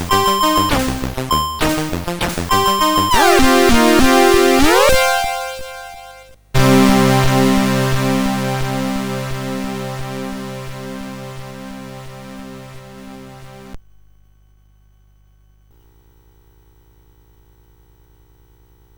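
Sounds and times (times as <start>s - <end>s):
CSG8580R5 synthesizer: 0.0s - 13.8s.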